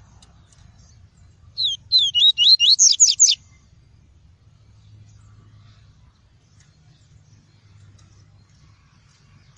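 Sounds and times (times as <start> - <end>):
double-collared seedeater singing whistled notes: 1.5 - 3.5.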